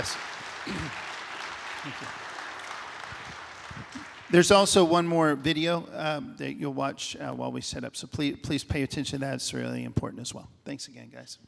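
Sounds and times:
speech: 0.0 - 1.1, 1.8 - 2.2, 4.3 - 11.4
audience applause: 0.0 - 5.4.

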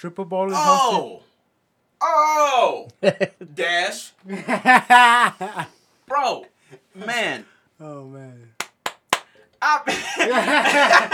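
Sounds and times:
speech: 0.0 - 1.3, 2.0 - 8.5, 9.6 - 11.1
laughter: 3.0 - 3.5, 4.2 - 5.7, 9.9 - 11.1
hand clapping: 8.6 - 9.4.

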